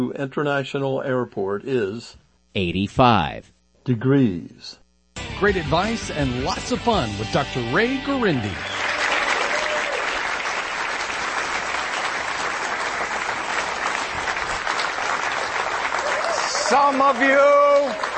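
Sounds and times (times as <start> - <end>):
speech: 0.0 - 4.8, 5.4 - 8.8, 16.7 - 18.1
studio audience applause: 8.4 - 18.1.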